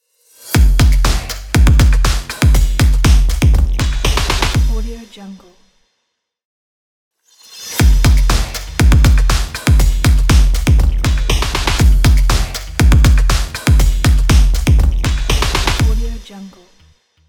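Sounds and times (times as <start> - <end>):
breakbeat drum and percussion logo: 0.3 - 5.2, 7.5 - 16.8.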